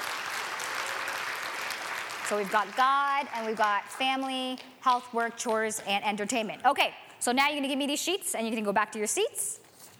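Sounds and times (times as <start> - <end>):
round of applause: 0.0 - 3.4
speech: 2.3 - 9.6.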